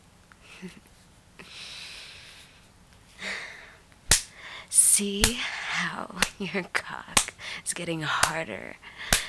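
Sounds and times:
speech: 0.6s - 0.9s, 5.0s - 9.2s
spanking slap: 4.1s - 4.3s, 5.2s - 5.4s.

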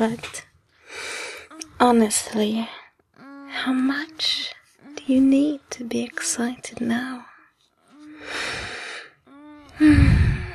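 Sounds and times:
speech: 0.0s - 0.4s, 1.8s - 2.8s, 3.6s - 7.3s, 9.8s - 10.1s
person breathing heavily: 0.8s - 1.6s, 8.0s - 10.5s.

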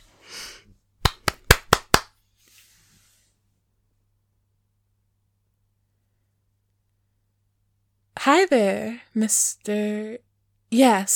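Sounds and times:
hand claps as cue marker: 1.0s - 2.2s
speech: 8.2s - 11.1s.

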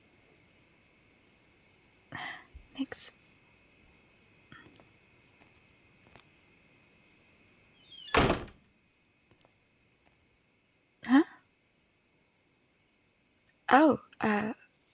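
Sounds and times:
speech: 2.2s - 3.2s, 13.7s - 14.6s
door opening: 7.8s - 8.6s.

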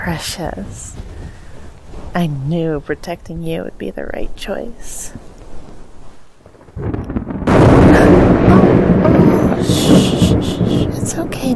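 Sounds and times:
speech: 0.0s - 1.1s, 2.1s - 5.2s, 11.2s - 11.5s
thunder: 5.3s - 11.5s.

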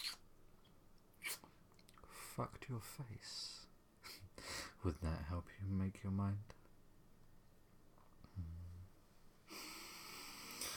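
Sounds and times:
speech: 2.4s - 3.6s, 4.8s - 6.6s
person gasping: 9.5s - 10.7s.

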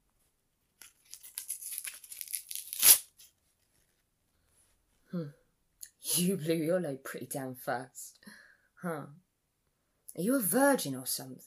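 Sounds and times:
duct tape being torn off: 0.8s - 3.2s
speech: 5.1s - 5.4s, 6.1s - 8.1s, 8.8s - 9.2s, 10.2s - 11.4s.

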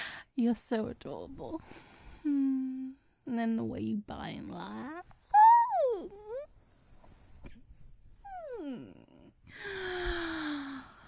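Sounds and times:
speech: 0.4s - 2.7s, 3.3s - 5.1s
quiet yawn: 8.4s - 11.0s.

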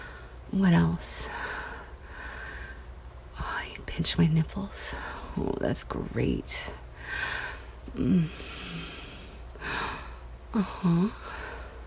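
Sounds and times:
speech: 0.5s - 1.4s, 4.0s - 8.9s, 10.5s - 11.4s
woman gasping: 7.0s - 11.7s.

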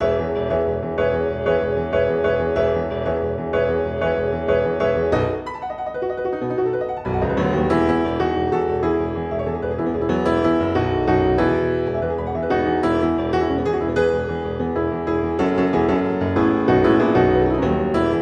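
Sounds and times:
insane speed piano remix: 0.0s - 18.2s.

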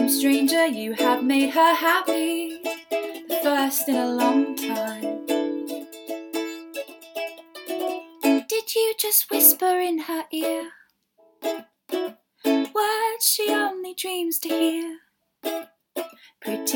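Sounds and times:
person singing a cover: 0.0s - 6.8s, 8.2s - 10.8s, 12.5s - 15.0s, 16.4s - 16.7s
ukulele: 0.0s - 16.7s.

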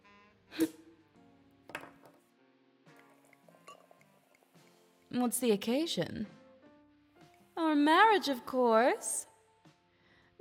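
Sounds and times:
champagne glasses clinking: 3.0s - 4.6s
speech: 5.2s - 6.4s, 7.8s - 9.3s.

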